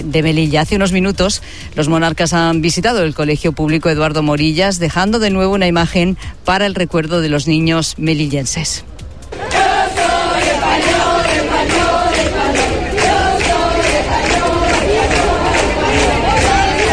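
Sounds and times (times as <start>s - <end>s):
speech: 0.0s - 9.4s
large crowd chanting during the Spanish royal visit to Melilla: 9.3s - 16.9s.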